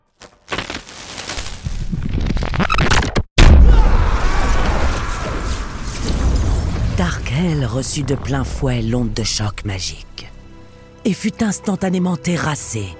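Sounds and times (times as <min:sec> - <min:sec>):
stone falling and shattering: 0:00.2 - 0:07.0
rumbling burst of debris: 0:03.4 - 0:10.7
speech: 0:07.4 - 0:10.1, 0:11.1 - 0:12.9.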